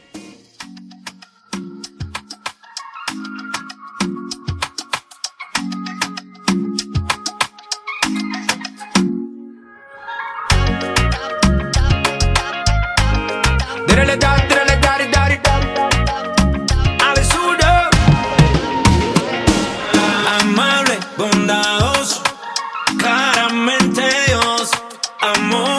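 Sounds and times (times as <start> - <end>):
Latin club music: 0.0 - 25.7.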